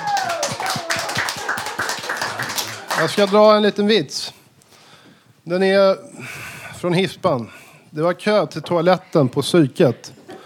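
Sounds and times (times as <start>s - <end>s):
group applause: 0.0s - 3.6s
speech: 3.0s - 4.3s, 5.5s - 10.1s.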